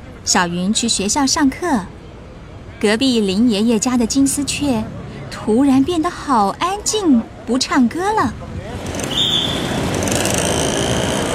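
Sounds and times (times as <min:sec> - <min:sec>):
busy street traffic of buses and cars: 0:00.0 - 0:11.3
speech: 0:00.2 - 0:02.0, 0:02.8 - 0:08.6, 0:09.3 - 0:09.8
brake squeal: 0:08.8 - 0:11.3.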